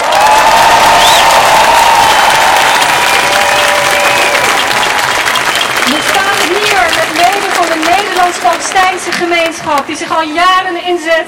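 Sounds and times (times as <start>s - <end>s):
large crowd applauding: 0.0s - 10.2s
whistles: 1.0s - 1.4s, 3.1s - 6.0s
speech: 9.0s - 11.2s.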